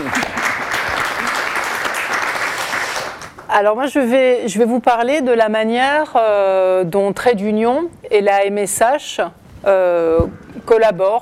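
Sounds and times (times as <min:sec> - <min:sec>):
audience applause: 0:00.0 - 0:03.4
speech: 0:03.6 - 0:11.2.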